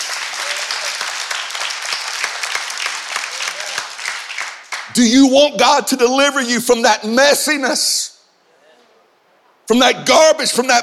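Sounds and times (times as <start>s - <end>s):
audience clapping: 0.0s - 5.0s
speech: 4.9s - 8.0s, 9.7s - 10.8s.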